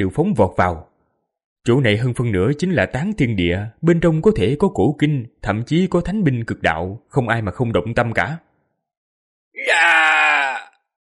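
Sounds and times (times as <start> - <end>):
speech: 0.0 - 0.9, 1.6 - 8.5
man screaming in pain and terror, audiobook sound effect: 9.6 - 10.8.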